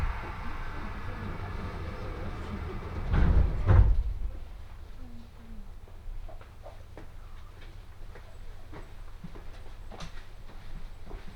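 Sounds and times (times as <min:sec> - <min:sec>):
E721 series train on the Tohoku Main Line: 0:00.0 - 0:05.1.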